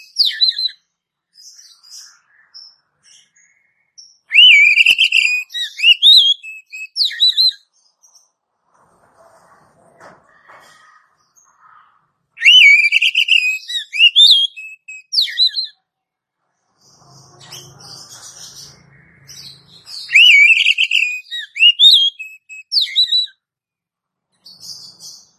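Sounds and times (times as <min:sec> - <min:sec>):
Oriental magpie-robin whistled phrase: 0:04.3 - 0:07.6, 0:12.4 - 0:15.7, 0:20.0 - 0:23.4.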